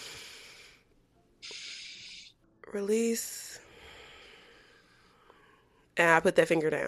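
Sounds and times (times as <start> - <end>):
deep calming breath: 0.0 - 2.4, 3.6 - 5.9
speech: 2.7 - 3.5, 6.0 - 6.8.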